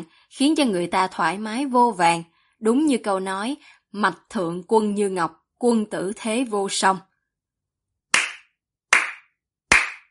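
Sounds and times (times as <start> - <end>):
speech: 0.3 - 7.1
hand claps of applause: 8.1 - 10.0.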